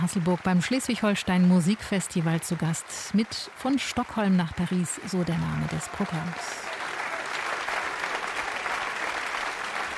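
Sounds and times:
speech: 0.0 - 6.8
concert audience applause: 0.0 - 9.9.

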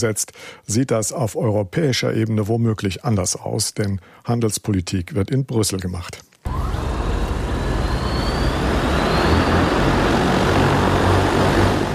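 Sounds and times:
speech: 0.0 - 6.7
Ehang passenger drone air taxi flying: 6.5 - 11.9.

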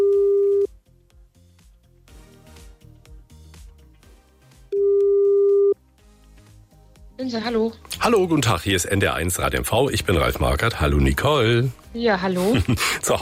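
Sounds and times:
telephone ringback tone: 0.0 - 0.7, 4.8 - 5.8
soft music: 0.0 - 13.1
speech: 7.3 - 13.1.

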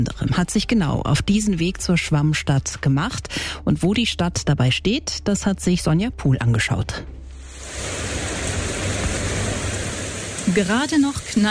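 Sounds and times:
speech: 0.0 - 7.2, 10.5 - 11.4
heavy rain during a thunderstorm: 7.4 - 11.4.

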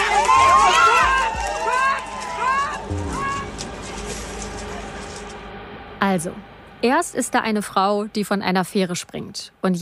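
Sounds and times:
protesters pushing through a fence: 0.0 - 5.4
protesters running: 0.0 - 5.4
speech: 6.0 - 9.8.

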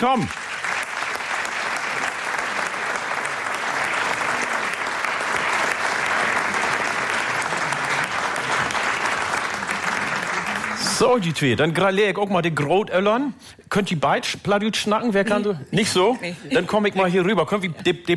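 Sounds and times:
speech: 0.0 - 0.5, 11.0 - 18.1
large audience applause: 0.0 - 11.8.

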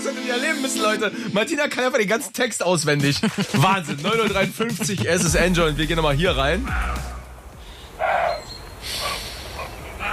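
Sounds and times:
speech: 0.3 - 7.1
laughter: 3.0 - 7.1
roe deer call during rutting season: 6.6 - 10.1.

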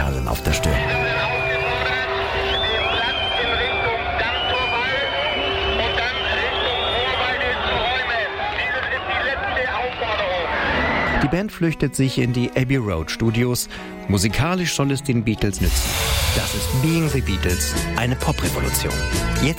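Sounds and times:
speech: 0.3 - 1.0, 11.3 - 19.5
huge concert audience screaming: 0.8 - 11.3.

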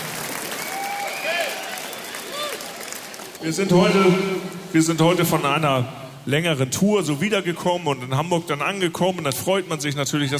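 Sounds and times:
applause: 0.0 - 3.4
speech: 3.4 - 10.3.

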